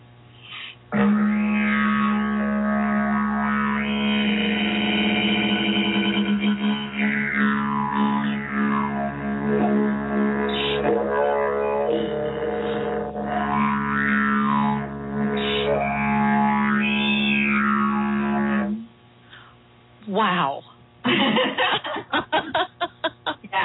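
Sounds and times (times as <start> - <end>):
didgeridoo drone with circular breathing: 0.9 - 18.9
laughter: 21.1 - 23.5.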